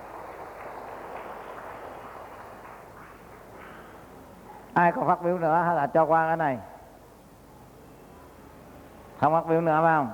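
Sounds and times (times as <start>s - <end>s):
audience applause: 0.0s - 4.2s
speech: 4.8s - 6.7s, 9.2s - 10.1s.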